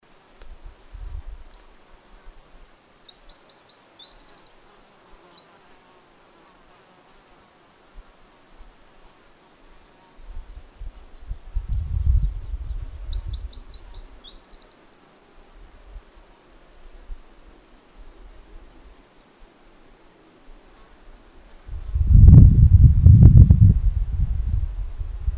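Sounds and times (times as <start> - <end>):
Eurasian wren singing trills: 0.2 - 5.6, 11.2 - 15.5
wind rumble: 10.4 - 13.8, 21.6 - 25.3.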